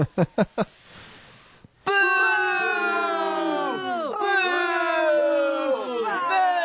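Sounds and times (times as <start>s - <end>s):
angry crowd booing sound effect: 1.9s - 6.6s.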